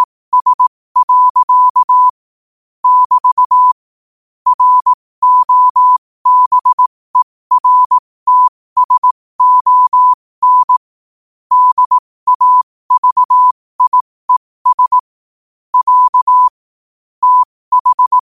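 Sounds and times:
morse code at 5 wpm: 0:00.0 - 0:02.2, 0:02.8 - 0:03.8, 0:04.5 - 0:06.9, 0:07.5 - 0:10.9, 0:11.5 - 0:15.1, 0:15.7 - 0:16.6, 0:17.2 - 0:18.2.

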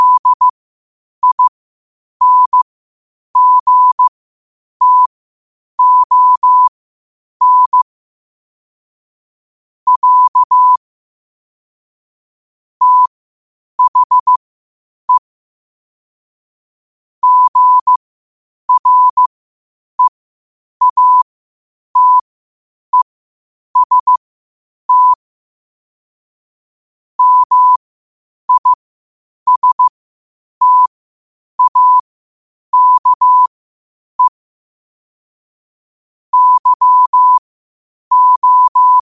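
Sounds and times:
morse code beeps at 5 wpm: 0:00.0 - 0:00.5, 0:01.2 - 0:01.5, 0:02.2 - 0:02.6, 0:03.4 - 0:04.1, 0:04.8 - 0:05.1, 0:05.8 - 0:06.7, 0:07.4 - 0:07.8, 0:09.9 - 0:10.8, 0:12.8 - 0:13.1, 0:13.8 - 0:14.4, 0:17.2 - 0:18.0, 0:18.7 - 0:19.3, 0:20.8 - 0:21.2, 0:22.0 - 0:22.2, 0:23.8 - 0:24.2, 0:24.9 - 0:25.2, 0:27.2 - 0:27.8, 0:28.5 - 0:28.8, 0:29.5 - 0:29.9, 0:30.6 - 0:30.9, 0:31.6 - 0:32.0, 0:32.7 - 0:33.5, 0:36.3 - 0:37.4, 0:38.1 - 0:39.1.

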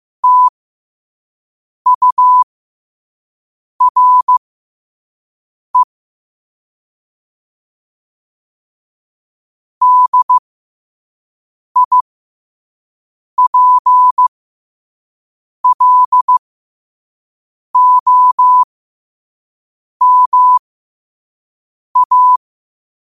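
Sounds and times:
morse code at 5 wpm: 0:00.2 - 0:00.5, 0:01.9 - 0:02.5, 0:03.8 - 0:04.4, 0:09.8 - 0:10.4, 0:11.8 - 0:12.0, 0:13.4 - 0:14.2, 0:15.6 - 0:16.4, 0:17.8 - 0:18.7, 0:20.0 - 0:20.6, 0:22.0 - 0:22.4.

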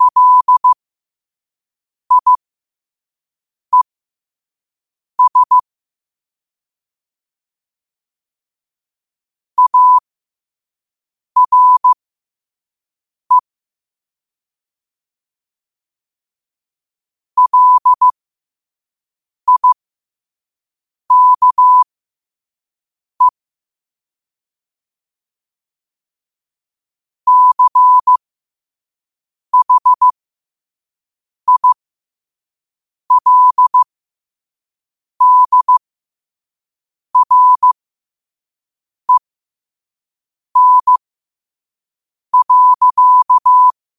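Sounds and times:
morse code at 5 wpm: 0:00.0 - 0:00.8, 0:02.1 - 0:02.4, 0:05.2 - 0:05.6, 0:09.6 - 0:10.0, 0:11.4 - 0:12.0, 0:17.4 - 0:18.2, 0:19.5 - 0:19.8, 0:21.1 - 0:21.9, 0:27.3 - 0:28.2, 0:29.6 - 0:30.1, 0:31.5 - 0:31.8, 0:33.1 - 0:33.9, 0:35.2 - 0:35.8, 0:37.2 - 0:37.8, 0:40.6 - 0:41.0, 0:42.4 - 0:43.8.

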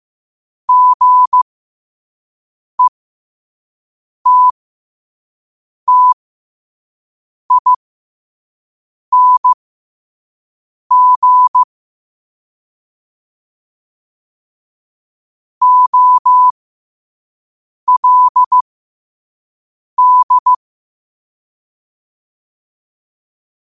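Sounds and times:
morse code at 5 wpm: 0:00.7 - 0:01.4, 0:04.3 - 0:04.6, 0:05.9 - 0:06.2, 0:07.5 - 0:07.8, 0:09.1 - 0:09.6, 0:10.9 - 0:11.7, 0:15.6 - 0:16.5, 0:17.9 - 0:18.6, 0:20.0 - 0:20.6.

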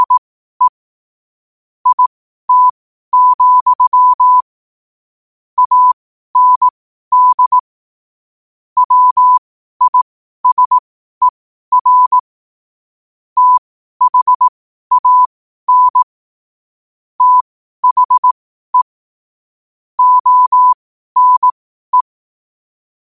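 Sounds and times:
morse code at 5 wpm: 0:00.0 - 0:00.7, 0:01.8 - 0:04.5, 0:05.6 - 0:07.6, 0:08.8 - 0:10.8, 0:11.7 - 0:12.2, 0:13.4 - 0:16.0, 0:17.2 - 0:18.9, 0:20.0 - 0:22.1.

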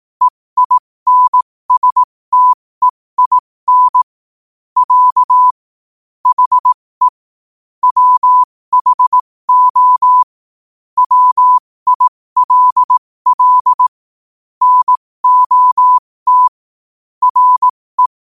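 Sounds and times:
morse code at 5 wpm: 0:00.2 - 0:04.1, 0:04.8 - 0:05.6, 0:06.2 - 0:07.2, 0:07.8 - 0:10.3, 0:11.0 - 0:14.0, 0:14.6 - 0:16.6, 0:17.2 - 0:18.2.

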